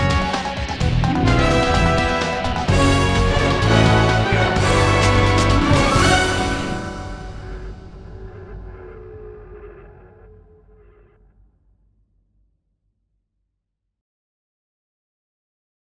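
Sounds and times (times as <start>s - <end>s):
orchestral theme: 0.0s - 8.8s.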